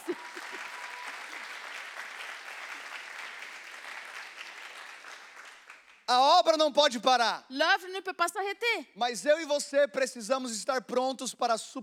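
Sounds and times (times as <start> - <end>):
audience applause for the translator: 0.0 - 6.0
speech: 6.1 - 11.8.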